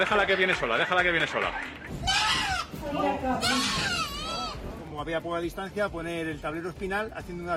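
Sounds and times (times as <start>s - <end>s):
speech: 0.0s - 1.9s, 2.8s - 4.1s, 5.0s - 7.5s
goat bleating on a building terrace in Madrid: 1.9s - 2.8s, 3.4s - 4.6s.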